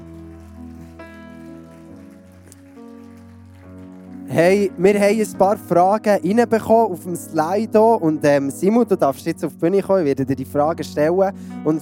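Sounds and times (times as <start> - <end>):
audience applause: 0.0 - 4.9
speech: 4.3 - 11.8.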